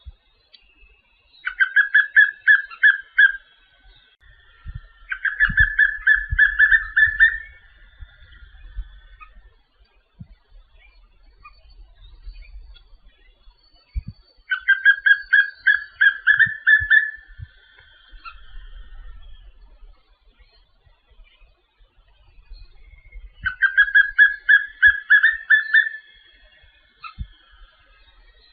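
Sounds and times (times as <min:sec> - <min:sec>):
papinho-amarelo whistling fast evenly pitched notes: 0:01.4 - 0:03.5, 0:04.4 - 0:09.5, 0:10.8 - 0:19.6, 0:22.6 - 0:28.5.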